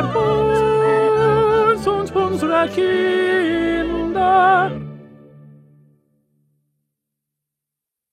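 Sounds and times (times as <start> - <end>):
tenor singing: 0.0 - 5.2.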